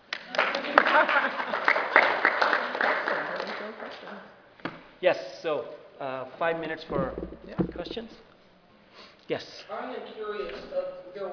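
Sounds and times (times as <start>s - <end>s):
audience clapping: 0.1s - 4.2s
speech: 5.0s - 8.3s, 9.3s - 11.3s.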